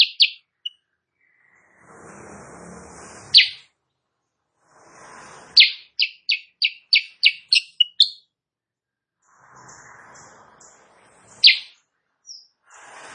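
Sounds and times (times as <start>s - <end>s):
Sooty-headed bulbul singing in the morning: 0.0s - 0.8s, 3.4s - 3.6s, 5.6s - 8.3s, 11.4s - 12.5s.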